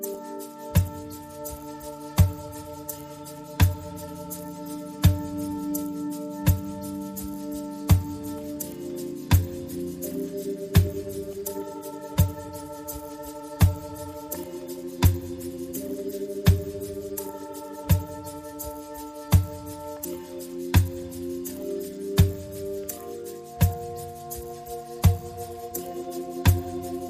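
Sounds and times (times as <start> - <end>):
percussion: 0.0 - 27.0
synth pads: 0.0 - 27.0.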